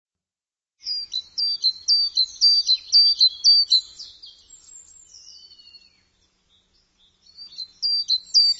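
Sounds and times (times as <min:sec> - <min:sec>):
bird giving high downward-sliding chirps: 0:00.8 - 0:08.5.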